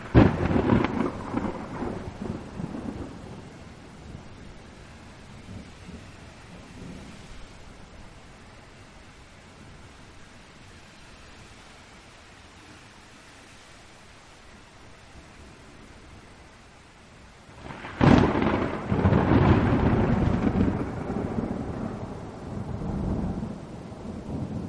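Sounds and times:
thunder crack: 0:00.0 - 0:03.4, 0:17.6 - 0:24.6
thunder rumbling: 0:00.0 - 0:08.1, 0:17.5 - 0:24.6
rain hissing: 0:00.0 - 0:24.6.

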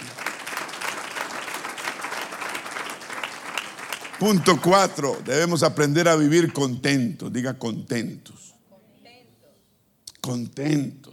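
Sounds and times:
audience applause: 0:00.0 - 0:06.6
speech: 0:04.2 - 0:08.5, 0:10.3 - 0:11.1.

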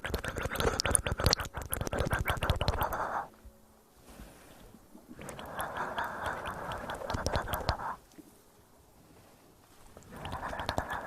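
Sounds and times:
wet clicking mouth sounds: 0:00.0 - 0:03.3, 0:05.2 - 0:08.0, 0:10.0 - 0:11.0
faint breathy rustle: 0:00.0 - 0:11.0.

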